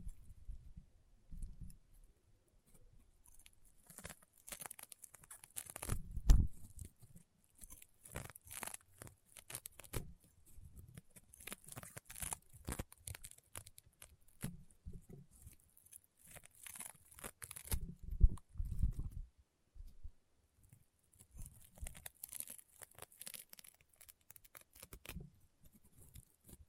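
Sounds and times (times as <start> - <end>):
soft low thumps of squeezing slime: 0.0 - 22.1
crunchy popping slime crackles and snaps: 3.4 - 7.0, 7.6 - 10.2, 10.9 - 14.6, 15.3 - 19.0, 21.2 - 25.3.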